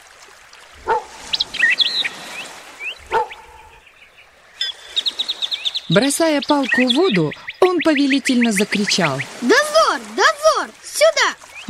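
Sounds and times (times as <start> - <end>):
birds chirping outdoors: 0.7 - 11.6
dog barking by a lake shore: 0.8 - 1.2, 3.1 - 3.8
speech: 5.9 - 9.6, 10.2 - 11.6.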